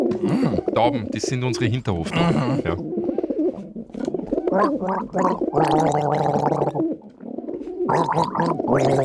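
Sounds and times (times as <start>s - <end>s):
person gargling water: 0.1s - 0.8s, 2.0s - 2.9s, 4.5s - 6.8s, 7.9s - 9.0s
speech: 0.8s - 3.0s, 4.6s - 6.9s, 7.9s - 9.0s.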